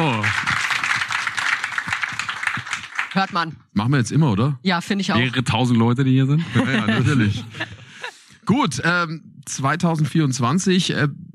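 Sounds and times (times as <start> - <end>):
small audience applause: 0.0 - 3.5
speech: 3.2 - 7.7, 8.5 - 11.3
laughter: 6.4 - 8.3.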